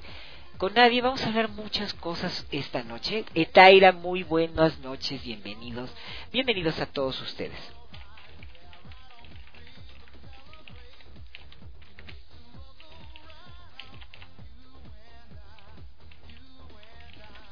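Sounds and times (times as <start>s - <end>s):
speech: 0.6s - 7.8s
rapid computer keyboard typing: 7.8s - 14.3s, 15.4s - 17.5s.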